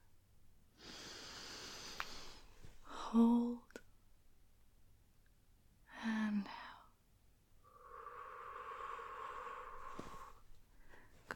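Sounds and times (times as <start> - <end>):
deep breath in: 0.8 - 2.5, 7.6 - 11.2
speech: 3.1 - 3.4.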